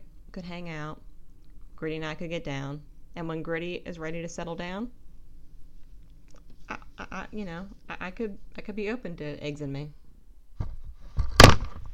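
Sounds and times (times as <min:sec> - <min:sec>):
speech: 0:00.4 - 0:01.1, 0:01.8 - 0:05.0, 0:07.1 - 0:10.0
microphone knocked over: 0:10.6 - 0:11.9.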